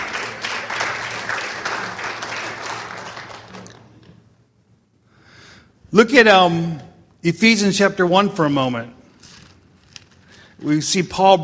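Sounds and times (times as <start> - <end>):
audience clapping: 0.0 - 4.1
speech: 5.9 - 9.0, 10.6 - 11.4.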